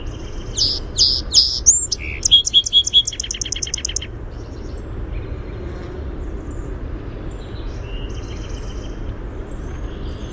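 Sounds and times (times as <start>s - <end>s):
song sparrow singing: 0.0s - 5.6s, 6.5s - 10.3s.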